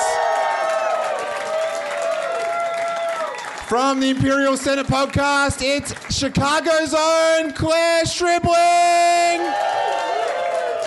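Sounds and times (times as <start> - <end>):
audience applause: 0.0 - 7.0, 9.3 - 10.8
speech: 3.7 - 9.8.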